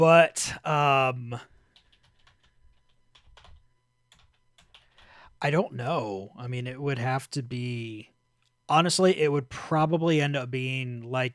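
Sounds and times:
speech: 0.0s - 1.5s, 5.4s - 8.1s, 8.7s - 11.3s
typing a message into Discord on a computer keyboard: 1.7s - 5.3s.

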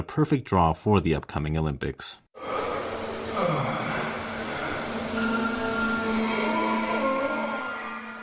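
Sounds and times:
speech: 0.0s - 2.5s
mechanical bus sculpture groaning and grunting with droning hum and whining tones: 2.4s - 8.2s.

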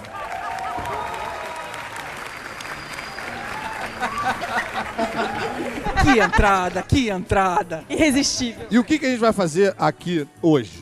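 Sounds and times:
audience applause: 0.0s - 6.9s
laughter: 3.4s - 9.3s
speech: 4.0s - 10.8s.

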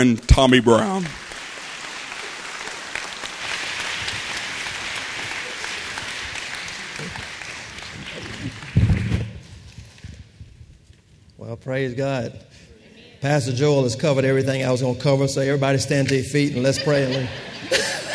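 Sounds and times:
speech: 0.0s - 1.2s, 11.6s - 12.5s, 13.2s - 17.9s
audience applause: 0.7s - 9.5s
laughter: 2.0s - 8.6s, 16.4s - 18.1s.

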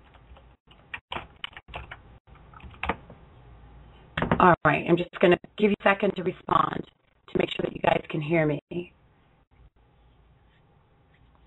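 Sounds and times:
typing on a computer keyboard: 0.0s - 3.0s
speech: 4.4s - 9.0s.

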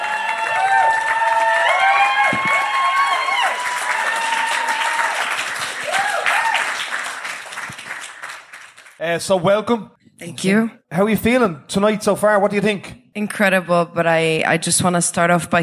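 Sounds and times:
audience cheering: 0.0s - 9.0s
audience applause as two women guests come to the stage: 0.0s - 9.1s
speech: 9.1s - 15.6s.

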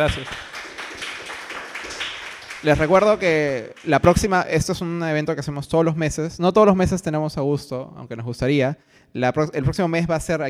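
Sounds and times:
speech: 0.0s - 0.5s, 2.6s - 10.4s
audience applause: 0.0s - 4.0s.

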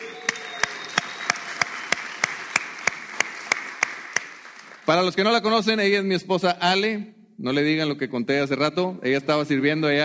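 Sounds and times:
audience applause: 0.0s - 5.0s
speech: 4.9s - 10.0s.

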